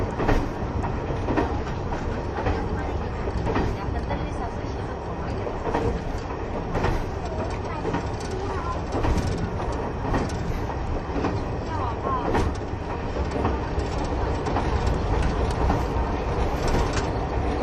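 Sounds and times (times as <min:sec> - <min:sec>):
KiHa 71 series Yufuin no Mori diesel train running: 0:00.0 - 0:17.6
rail clacks: 0:00.0 - 0:17.6
faint voices aboard a diesel train: 0:02.1 - 0:10.3, 0:11.0 - 0:14.0.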